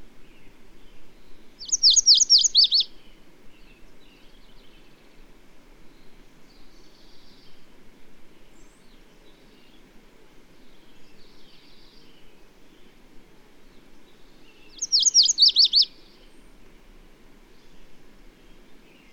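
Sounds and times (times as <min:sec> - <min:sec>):
bird song of rapid high sweeping notes: 0:01.6 - 0:02.9, 0:14.7 - 0:15.9.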